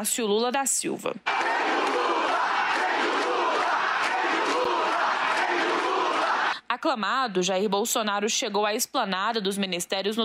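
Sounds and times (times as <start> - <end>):
speech: 0.0 - 2.0, 6.8 - 10.2
large crowd shouting political chants: 1.3 - 6.6.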